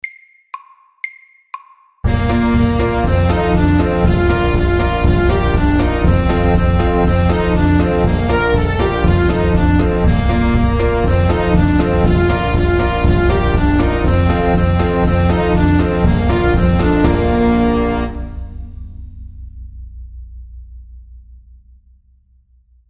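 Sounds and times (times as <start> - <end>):
cancan music: 2.0 - 18.6.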